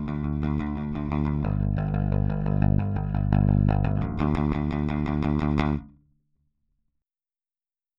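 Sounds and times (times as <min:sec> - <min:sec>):
bass: 0:00.0 - 0:06.0.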